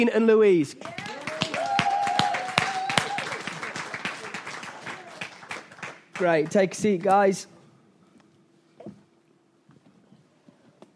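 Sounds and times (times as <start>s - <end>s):
speech: 0.0s - 1.1s, 6.2s - 7.5s
audience applause: 0.8s - 7.1s.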